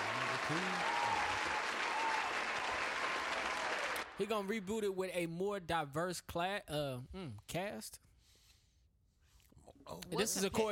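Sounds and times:
applause sound effect: 0.0 - 4.5
speech: 0.5 - 0.9, 4.2 - 8.1, 9.7 - 10.7.

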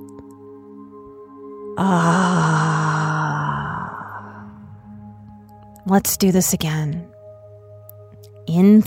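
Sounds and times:
speech: 1.8 - 2.4, 5.9 - 7.0, 8.6 - 8.8
person exhaling audibly through the mouth in a breathing exercise: 1.8 - 4.7.

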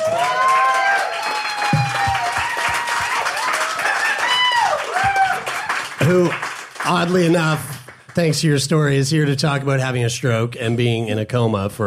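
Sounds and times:
audience round of applause: 0.0 - 9.2
speech: 6.1 - 11.8.

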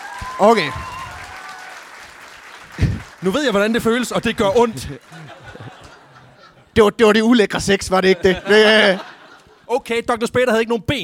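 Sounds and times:
audience clapping: 0.0 - 6.3
speech: 0.4 - 0.9, 3.2 - 5.5, 6.8 - 9.1, 9.7 - 11.0
laughter: 4.2 - 6.8, 7.9 - 9.8.

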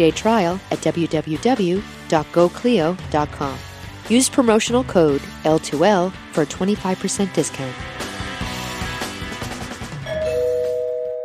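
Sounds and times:
speech: 0.0 - 8.0
rhythmic music: 0.0 - 10.5
two-note doorbell chime: 10.0 - 11.2.

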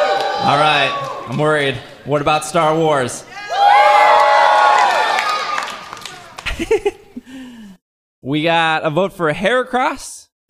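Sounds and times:
audience cheering: 0.0 - 2.0, 2.6 - 6.5
speech: 0.4 - 3.4, 6.6 - 7.0, 8.2 - 10.4
laughter: 6.0 - 7.4.

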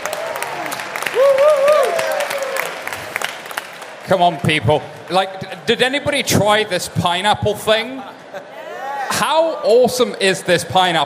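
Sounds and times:
audience applauding at live event: 0.0 - 4.1
speech: 4.1 - 11.0.

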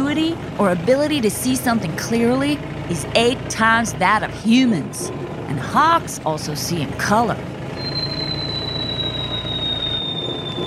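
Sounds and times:
speech: 0.1 - 7.5
peregrine falcon swooping dive: 7.8 - 10.6.

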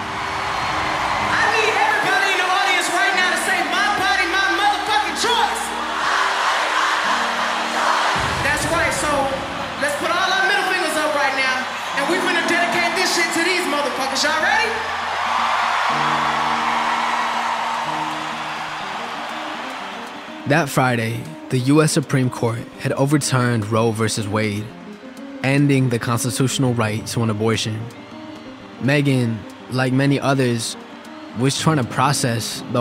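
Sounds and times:
festival crowd cheering and whooping: 0.0 - 20.6
speech: 20.5 - 24.8, 25.4 - 28.0, 28.8 - 30.8, 31.4 - 32.7.

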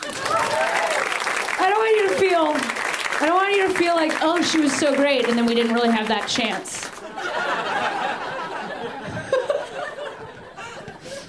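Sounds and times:
high whoops and cheering voices: 0.0 - 1.3
crowd clapping: 0.0 - 8.5
speech: 3.6 - 7.5
laughter: 7.0 - 11.2.

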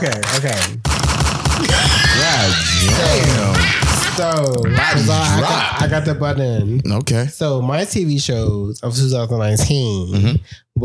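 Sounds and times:
speech: 0.0 - 0.9, 1.6 - 10.8
gunshots: 0.0 - 4.7.

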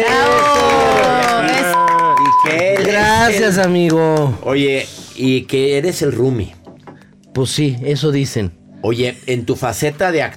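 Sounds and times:
applause: 0.0 - 4.4
speech: 2.5 - 6.6, 7.4 - 10.3.

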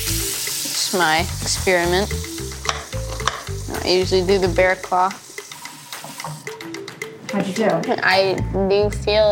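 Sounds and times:
water running from a faucet: 0.0 - 6.7
speech: 0.9 - 2.2, 3.8 - 5.2, 7.3 - 9.3.

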